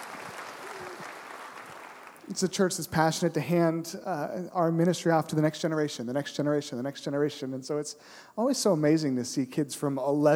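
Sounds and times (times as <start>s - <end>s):
audience clapping: 0.0s - 2.3s
speech: 2.3s - 10.3s.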